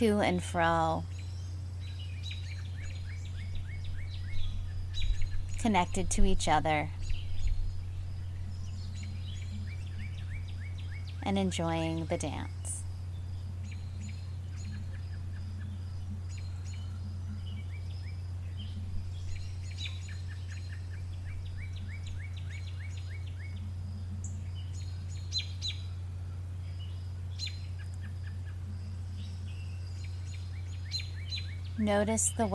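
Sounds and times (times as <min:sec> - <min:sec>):
speech: 0:00.0 - 0:01.2, 0:05.6 - 0:07.0, 0:11.2 - 0:12.6, 0:31.8 - 0:32.5
birds calling: 0:00.0 - 0:32.5.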